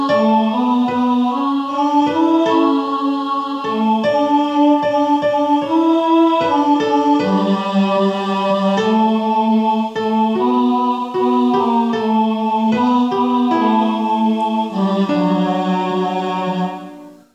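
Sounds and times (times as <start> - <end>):
tenor voices singing: 0.0 - 17.3.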